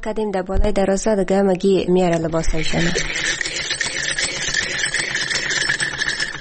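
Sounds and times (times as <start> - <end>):
speech: 0.0 - 3.4
old sewing machine running: 2.1 - 6.3.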